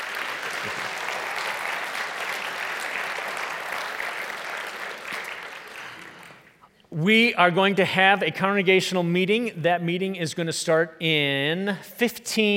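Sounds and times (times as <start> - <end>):
applause from a large group: 0.0 - 6.6
speech: 0.6 - 0.9, 7.0 - 12.5.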